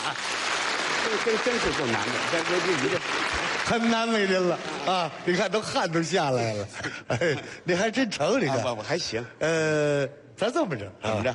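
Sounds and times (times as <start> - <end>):
audience applauding: 0.0 - 5.5
speech: 1.1 - 11.3.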